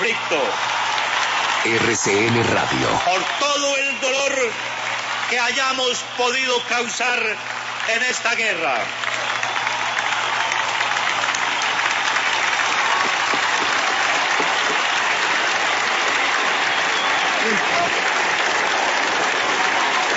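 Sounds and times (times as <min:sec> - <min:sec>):
sustained applause from a large crowd in convention center: 0:00.0 - 0:20.1
speech: 0:01.6 - 0:09.2.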